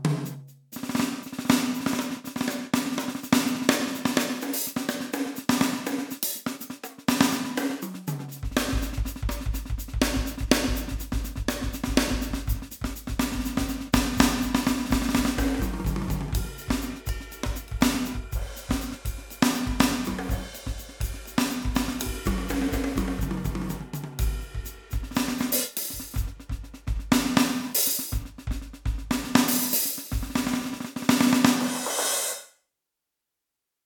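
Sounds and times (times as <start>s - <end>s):
Yamaha DTX10K electronic drums with 80s UK gated sound: 0.2s - 32.4s.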